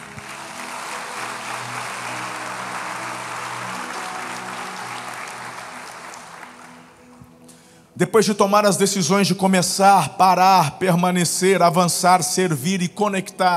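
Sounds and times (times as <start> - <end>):
audience applause: 0.0 - 7.3
speech: 8.0 - 13.5.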